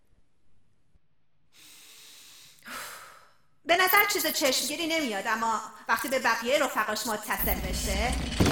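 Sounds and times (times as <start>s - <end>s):
deep breath: 1.5s - 3.5s
speech: 3.8s - 8.4s.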